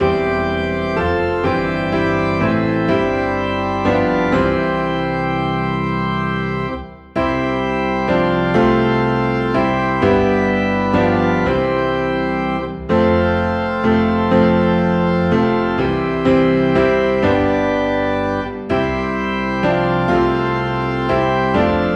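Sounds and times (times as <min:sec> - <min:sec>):
low organ in C: 0:00.0 - 0:21.9
low piano in C: 0:00.0 - 0:21.9.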